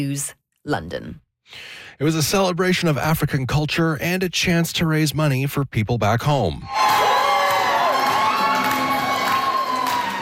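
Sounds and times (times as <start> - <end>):
speech: 0.0 - 7.0
children shouting: 6.7 - 10.2
crowd cheering at a Winnipeg celebration of African culture fashion show: 6.7 - 10.2.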